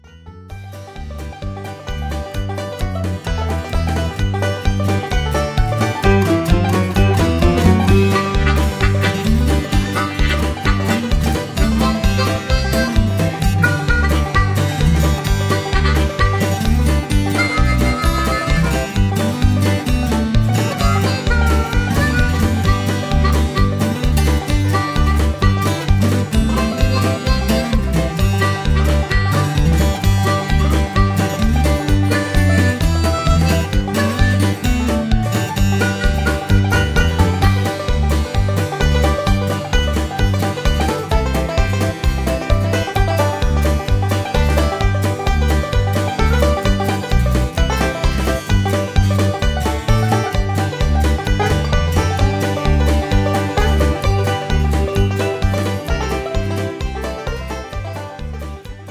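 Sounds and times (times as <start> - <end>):
instrumental music: 0.0 - 58.9.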